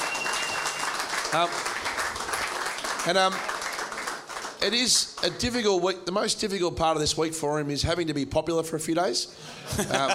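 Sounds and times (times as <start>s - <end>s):
audience round of applause: 0.0s - 5.5s
speech: 1.3s - 1.7s, 3.0s - 3.5s, 4.6s - 10.1s
laughter: 9.4s - 10.1s.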